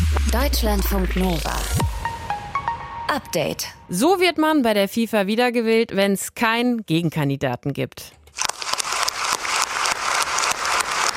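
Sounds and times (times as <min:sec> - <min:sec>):
speech: 0:00.4 - 0:01.8, 0:03.1 - 0:08.5
applause: 0:08.4 - 0:11.1.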